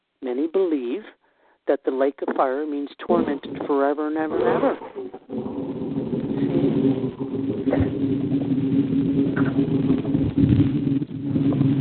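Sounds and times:
speech: 0:00.2 - 0:05.7
boat engine running across the road: 0:03.2 - 0:11.7.

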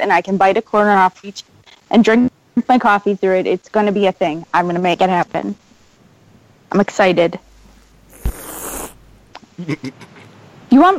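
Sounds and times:
speech: 0:00.0 - 0:05.6, 0:06.7 - 0:07.5, 0:09.6 - 0:10.1, 0:10.7 - 0:10.9
cat hissing: 0:08.1 - 0:09.0.

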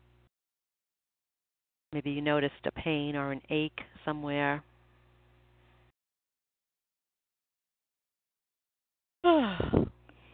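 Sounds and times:
speech: 0:01.9 - 0:04.7, 0:09.2 - 0:09.9
person yawning: 0:09.2 - 0:09.9.

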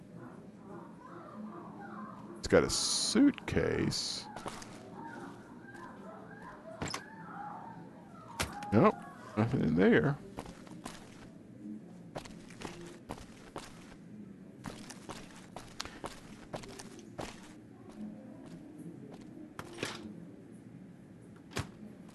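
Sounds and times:
murmur: 0:00.0 - 0:22.1
speech: 0:02.4 - 0:04.6, 0:08.7 - 0:10.2
footsteps tromping around a room: 0:10.2 - 0:11.3, 0:12.2 - 0:14.0, 0:14.6 - 0:19.3.

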